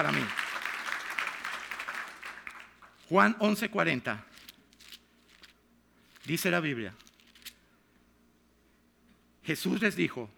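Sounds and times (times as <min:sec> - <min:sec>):
speech: 0:00.0 - 0:00.4, 0:03.1 - 0:04.3, 0:06.2 - 0:07.0, 0:09.5 - 0:10.3
applause: 0:00.0 - 0:03.0.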